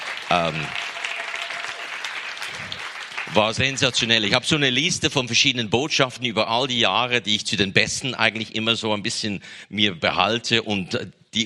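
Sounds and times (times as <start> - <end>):
audience applause at a school conference talk: 0.0 - 4.6
speech: 0.3 - 0.9, 3.3 - 11.4.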